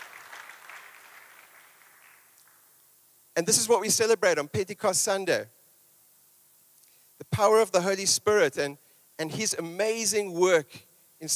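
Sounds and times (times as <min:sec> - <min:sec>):
audience applause: 0:00.0 - 0:02.6
speech: 0:03.4 - 0:05.6, 0:07.4 - 0:11.3.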